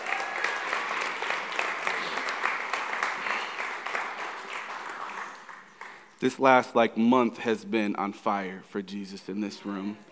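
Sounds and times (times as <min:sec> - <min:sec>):
audience applause for a church worship team: 0:00.0 - 0:06.1
speech: 0:06.2 - 0:10.1.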